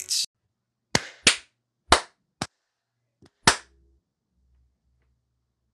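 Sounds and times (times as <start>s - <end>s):
sharp hand claps: 1.0s - 2.1s, 3.4s - 3.7s.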